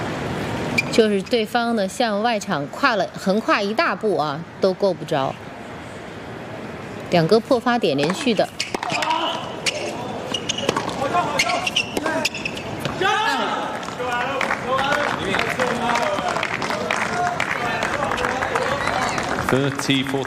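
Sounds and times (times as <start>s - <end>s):
speech: 1.0s - 5.5s, 7.1s - 9.0s, 19.5s - 20.2s
tennis ball strikes: 8.0s - 13.0s
spectators cheering during a tennis point: 8.7s - 20.2s
people shouting: 8.8s - 10.1s, 13.0s - 19.3s.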